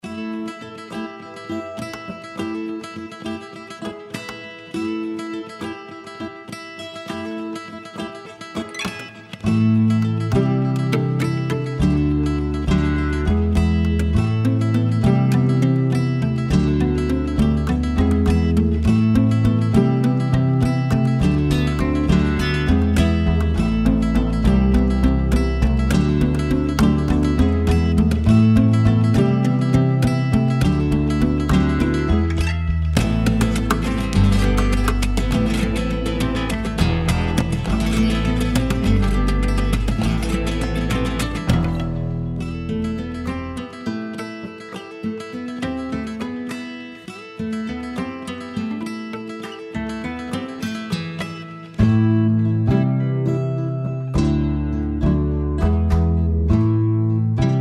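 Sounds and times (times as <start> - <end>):
guitar: 0.0 - 57.5.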